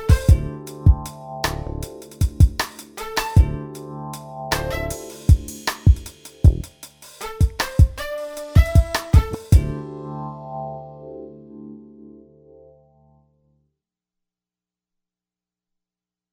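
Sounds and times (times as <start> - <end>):
Akai XR20 drum machine slow jam factory pattern: 0.0 - 9.8.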